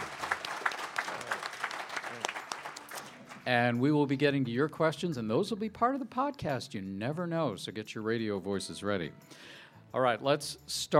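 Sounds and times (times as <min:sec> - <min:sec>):
live audience applause at a bar media and judiciary conference: 0:00.0 - 0:03.4
speech: 0:03.4 - 0:10.9.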